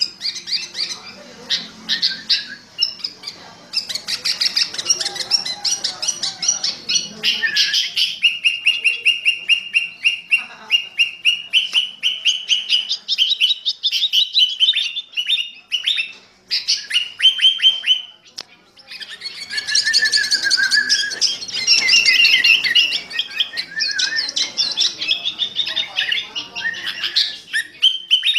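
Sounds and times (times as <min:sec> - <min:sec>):
sooty-headed bulbul chattering song in fierce thunder voice style: 0:00.0 - 0:28.3.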